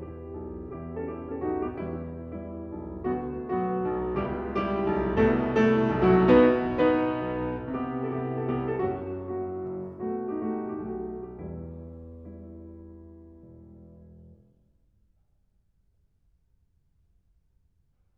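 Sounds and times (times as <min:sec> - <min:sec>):
folk song on piano: 0:00.0 - 0:14.4.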